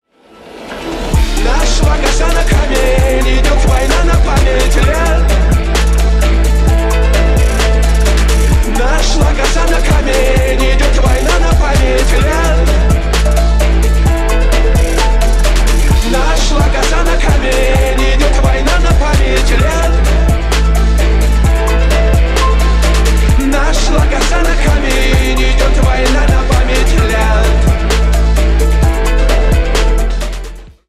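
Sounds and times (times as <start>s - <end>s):
phonk music: 0.4s - 30.8s.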